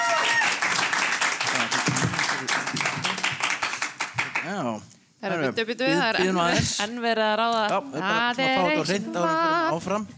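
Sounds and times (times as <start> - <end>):
audience clapping after team scores are read out: 0.0 - 4.7
speech: 4.5 - 10.1.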